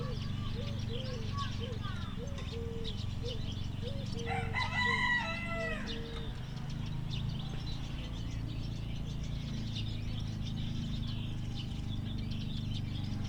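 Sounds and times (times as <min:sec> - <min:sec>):
faint bird twittering: 0:00.0 - 0:13.2
steady low engine drone: 0:00.0 - 0:13.2
rooster crowing: 0:04.2 - 0:06.3.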